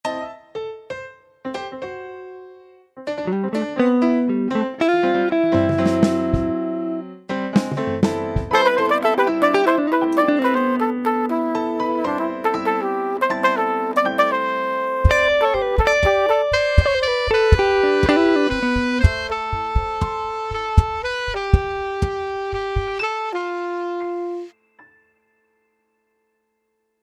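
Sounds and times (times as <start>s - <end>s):
jazz music sample: 3.3s - 24.6s.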